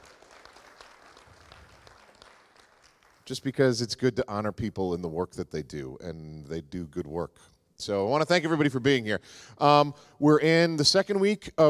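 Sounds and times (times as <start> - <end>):
audience applause: 0.0 - 3.3
speech: 3.3 - 11.6.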